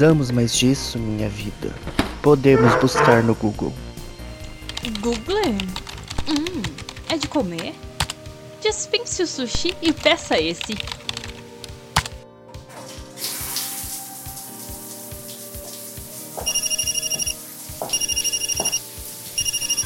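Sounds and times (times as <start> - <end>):
speech: 0.0 - 3.9, 4.8 - 7.9, 8.6 - 11.0
telephone ringing: 16.4 - 18.8, 19.4 - 19.8.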